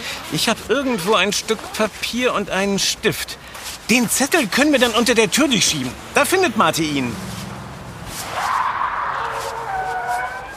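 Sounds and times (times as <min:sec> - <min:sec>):
speech: 0:00.3 - 0:07.4
car tires screeching around a corner: 0:04.5 - 0:10.5.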